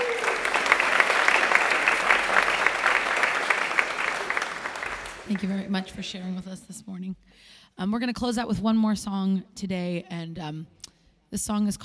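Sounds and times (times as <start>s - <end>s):
audience applause: 0.0s - 6.3s
speech: 5.3s - 11.8s.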